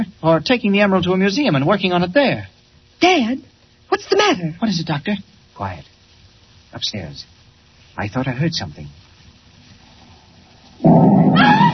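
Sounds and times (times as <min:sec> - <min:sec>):
speech: 0:00.2 - 0:05.9, 0:06.7 - 0:07.4, 0:08.0 - 0:09.0
explosion blowing in side of house: 0:10.8 - 0:11.7.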